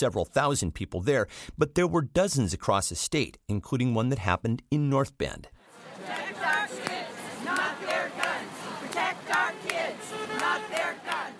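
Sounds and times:
speech: 0:00.0 - 0:06.6
protest crowd chanting and cheering at street intersection: 0:05.6 - 0:11.3.

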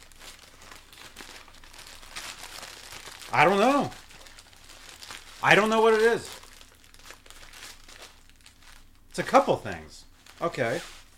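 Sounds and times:
package of paper and plastic being torn open by hand: 0:00.0 - 0:08.9
speech: 0:03.3 - 0:04.0, 0:05.4 - 0:06.4, 0:09.2 - 0:11.0.

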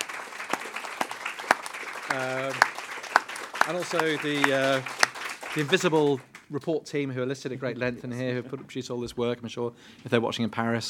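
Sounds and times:
applause for panelists: 0:00.0 - 0:06.6
speech: 0:02.1 - 0:02.6, 0:03.7 - 0:10.8.

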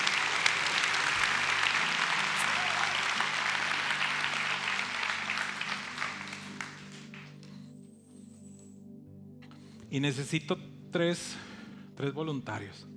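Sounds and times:
loud audience applause: 0:00.0 - 0:07.4
speech: 0:09.9 - 0:12.9.

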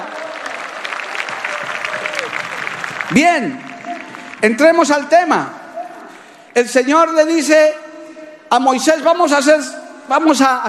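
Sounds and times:
audience applause: 0:00.0 - 0:04.9
speech: 0:03.1 - 0:03.7, 0:04.4 - 0:05.6, 0:06.6 - 0:07.8, 0:08.5 - 0:10.6.

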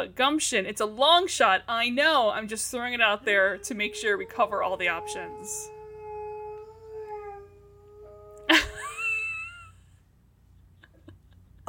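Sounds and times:
speech: 0:00.0 - 0:05.8
dog whimpering in its sleep: 0:03.2 - 0:09.0.

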